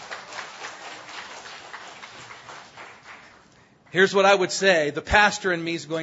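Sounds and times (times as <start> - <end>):
audience applauding: 0.0 - 3.6
speech: 3.9 - 6.0.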